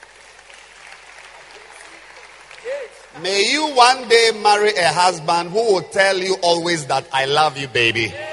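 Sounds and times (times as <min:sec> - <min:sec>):
audience clapping: 0:00.0 - 0:04.7
speech: 0:02.6 - 0:08.2.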